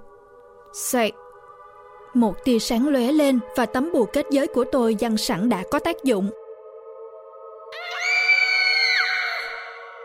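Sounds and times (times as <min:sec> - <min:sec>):
speech: 0:00.7 - 0:01.2, 0:02.1 - 0:06.4
demon child shrieking: 0:07.8 - 0:09.9.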